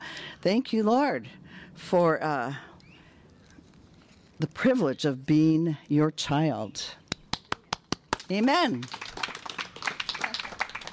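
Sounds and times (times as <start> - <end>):
speech: 0.4 - 2.7, 4.4 - 7.0, 8.3 - 9.0
hand clapping: 7.1 - 10.9.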